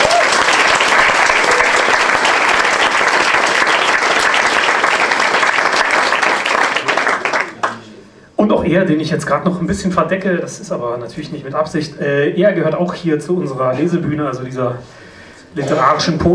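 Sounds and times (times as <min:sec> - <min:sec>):
audience applause: 0:00.0 - 0:07.9
speech: 0:08.7 - 0:15.0, 0:15.6 - 0:16.3.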